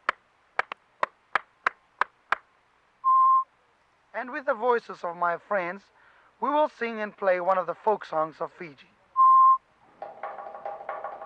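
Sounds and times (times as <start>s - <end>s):
sharp hand claps in a steady rhythm: 0.0s - 2.5s
short steady electronic beep: 3.0s - 3.4s, 9.2s - 9.6s
speech: 4.2s - 9.0s.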